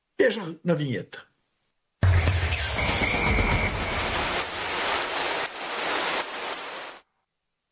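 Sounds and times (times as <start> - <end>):
speech: 0.2 - 1.3
shower running: 2.0 - 7.0.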